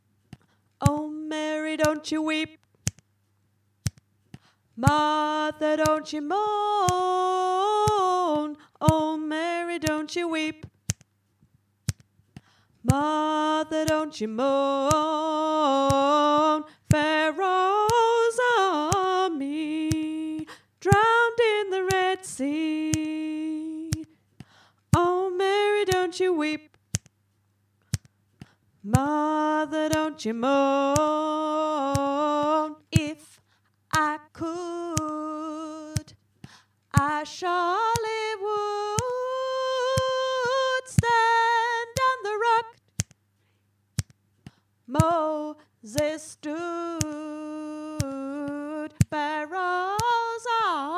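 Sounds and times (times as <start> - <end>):
alto voice singing: 0.8 - 2.6, 4.8 - 10.7, 12.9 - 24.1, 24.9 - 26.7, 28.9 - 33.4, 33.9 - 36.2, 36.9 - 42.8, 44.9 - 50.9.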